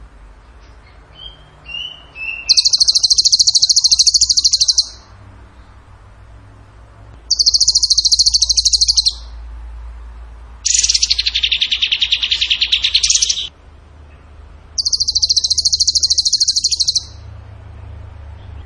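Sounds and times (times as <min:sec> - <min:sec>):
bird buzzy trills: 0:00.6 - 0:05.8, 0:07.3 - 0:09.5, 0:10.6 - 0:13.5, 0:14.8 - 0:17.4.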